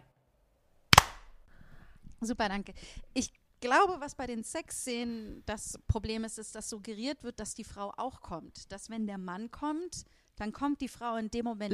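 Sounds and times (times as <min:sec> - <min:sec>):
hand clap for audio sync: 0:01.0 - 0:01.3
speech: 0:02.2 - 0:11.7.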